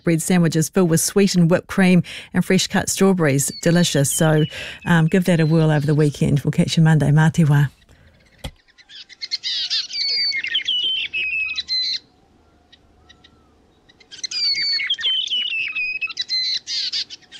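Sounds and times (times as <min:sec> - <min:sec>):
speech: 0:00.0 - 0:07.8
brown creeper birdsong: 0:03.3 - 0:06.4, 0:07.7 - 0:12.1, 0:12.7 - 0:17.3.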